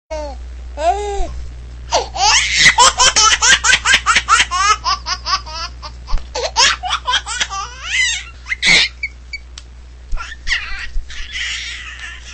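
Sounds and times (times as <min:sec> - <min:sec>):
baby laughing: 0:01.9 - 0:09.1, 0:10.1 - 0:12.3.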